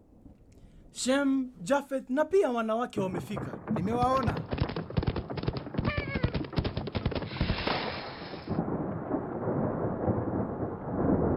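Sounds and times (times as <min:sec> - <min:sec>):
speech: 0:01.0 - 0:04.5
rain falling: 0:02.6 - 0:11.3.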